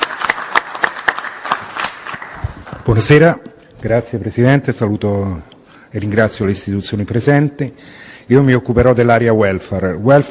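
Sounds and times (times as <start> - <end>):
audience applause welcoming a speaker to the podium at a formal event: 0.0 - 2.8
speech: 2.9 - 10.2.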